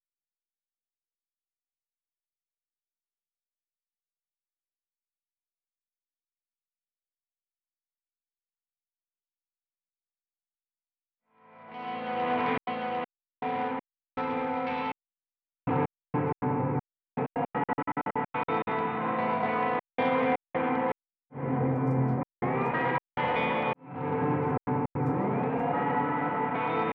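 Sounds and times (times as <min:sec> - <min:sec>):
guitar: 0:11.4 - 0:14.9, 0:15.7 - 0:26.9.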